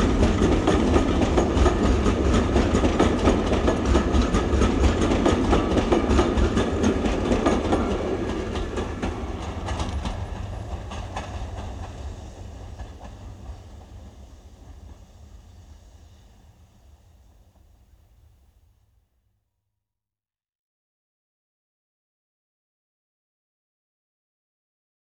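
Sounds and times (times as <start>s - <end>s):
steam trains: 0.0s - 18.8s.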